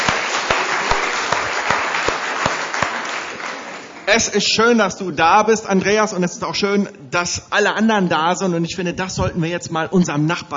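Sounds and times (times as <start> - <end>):
audience applause: 0.0 - 4.1
speech: 4.1 - 10.5.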